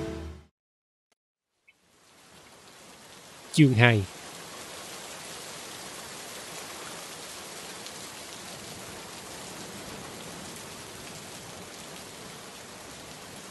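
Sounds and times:
heavy rain pouring down over a village and its fields: 0:01.8 - 0:13.4
speech: 0:03.6 - 0:04.2.

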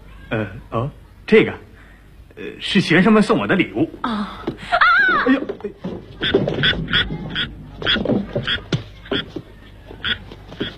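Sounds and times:
speech: 0:00.3 - 0:01.6, 0:02.4 - 0:09.4
frogs croaking: 0:06.2 - 0:09.3, 0:10.0 - 0:10.7.

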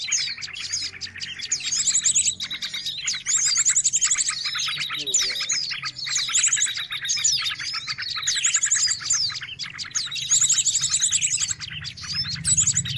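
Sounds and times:
bird song with high chirps and fast trilled phrases: 0:00.0 - 0:12.9.

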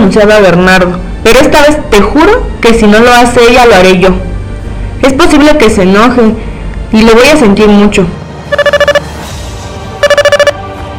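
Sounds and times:
speech: 0:00.1 - 0:04.3, 0:05.0 - 0:08.2
mobile phone ringing: 0:08.5 - 0:09.1, 0:10.0 - 0:10.6.

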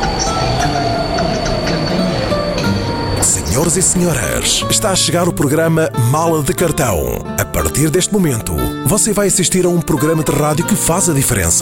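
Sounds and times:
intercity passenger train running on rails: 0:00.0 - 0:05.9
speech: 0:03.6 - 0:11.6.

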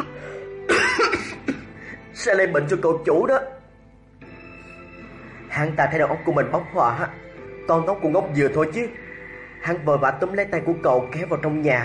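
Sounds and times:
hacking cough: 0:00.7 - 0:01.8
speech: 0:02.2 - 0:03.6, 0:05.6 - 0:09.0, 0:09.6 - 0:11.8.

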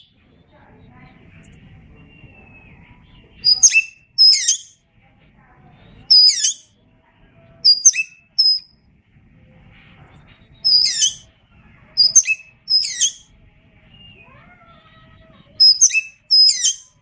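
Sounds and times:
Oriental magpie-robin song with sharp whistles and chattering notes: 0:01.3 - 0:04.8, 0:06.0 - 0:06.7, 0:07.6 - 0:08.7, 0:10.5 - 0:17.0.

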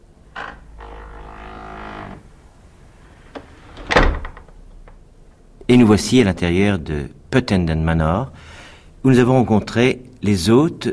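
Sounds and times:
castle door opening: 0:00.3 - 0:02.5, 0:03.2 - 0:05.0
speech: 0:05.7 - 0:10.9.

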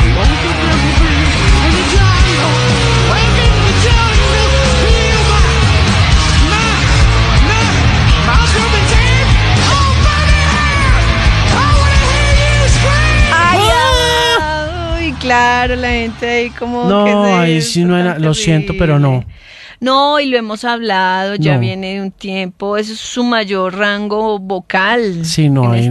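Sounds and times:
crowd of people yelling and cheering: 0:00.0 - 0:19.0
speech: 0:16.2 - 0:25.8.

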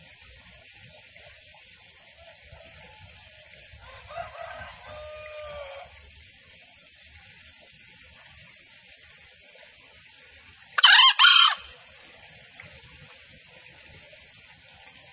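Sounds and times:
junglefowl calls: 0:02.6 - 0:06.0, 0:10.8 - 0:11.8.

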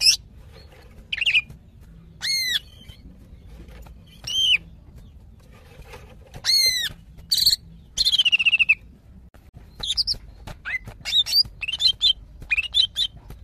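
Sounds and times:
female greater green leafbird calling: 0:00.0 - 0:05.2, 0:06.4 - 0:08.9, 0:09.7 - 0:13.4.

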